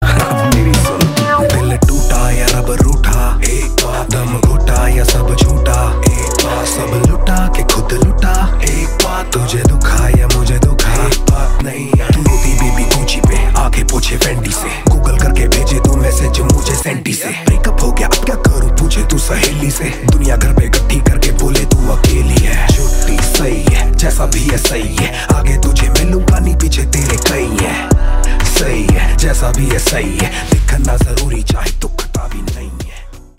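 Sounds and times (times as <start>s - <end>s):
rapping: 0.0s - 33.3s.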